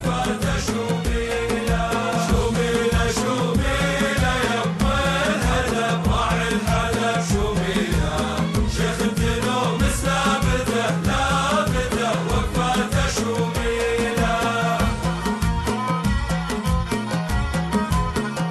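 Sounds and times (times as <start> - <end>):
Qatari Arabic song ringtone: 0.0 - 18.4.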